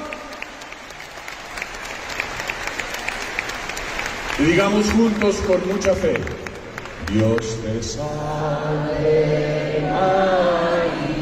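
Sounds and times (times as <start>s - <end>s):
audience applause: 0.0s - 8.0s
speech: 4.4s - 6.4s, 7.1s - 10.6s.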